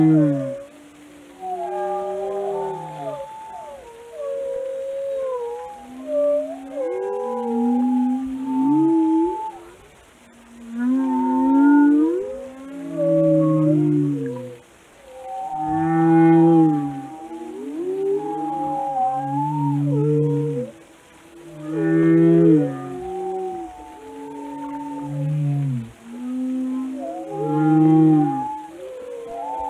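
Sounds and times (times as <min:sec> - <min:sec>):
whale calls, moans and sliding whistles: 0:00.0 - 0:29.6.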